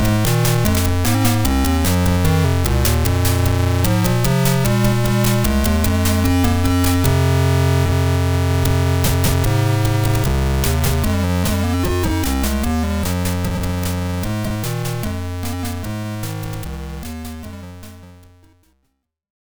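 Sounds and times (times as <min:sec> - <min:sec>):
sound chip electro music: 0:00.0 - 0:18.8.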